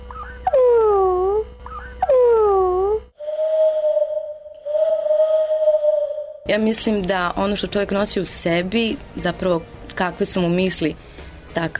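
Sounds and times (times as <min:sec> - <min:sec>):
low hum: 0:00.0 - 0:07.6
swooping falling cries: 0:00.2 - 0:06.5
voice imitating an owl hooting: 0:00.5 - 0:06.5
speech: 0:06.5 - 0:11.7.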